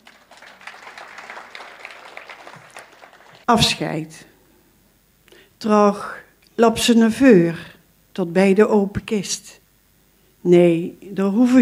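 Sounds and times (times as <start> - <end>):
audience applause: 0.0 - 3.5
speech: 3.5 - 4.3, 5.6 - 9.6, 10.4 - 11.5.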